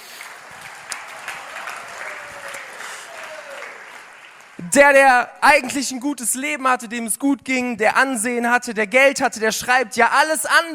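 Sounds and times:
applause: 0:00.0 - 0:04.7
speech: 0:04.6 - 0:10.7.

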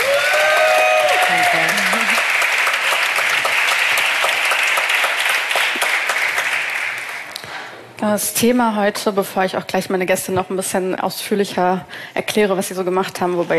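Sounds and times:
audience applause: 0:00.0 - 0:07.4
speech: 0:08.0 - 0:13.5.

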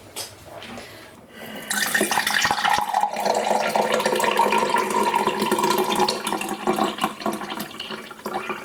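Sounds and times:
iced tea pouring into a glass: 0:01.7 - 0:08.6.

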